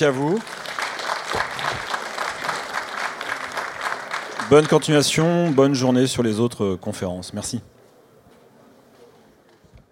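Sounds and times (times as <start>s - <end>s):
speech: 0.0s - 0.6s, 4.5s - 7.8s
audience applause: 0.0s - 5.8s.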